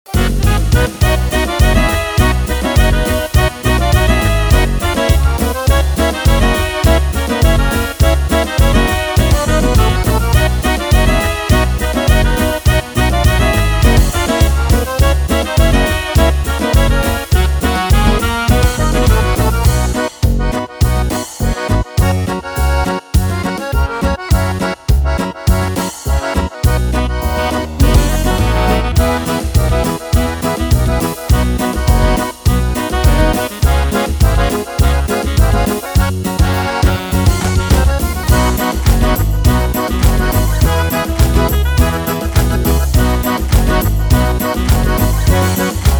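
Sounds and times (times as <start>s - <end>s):
folk party music: 0.0s - 45.9s.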